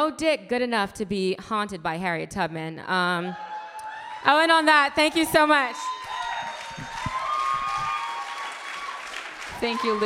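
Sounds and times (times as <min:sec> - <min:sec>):
speech: 0:00.0 - 0:03.5, 0:04.2 - 0:06.0, 0:09.6 - 0:10.0
audience applause: 0:05.8 - 0:10.0.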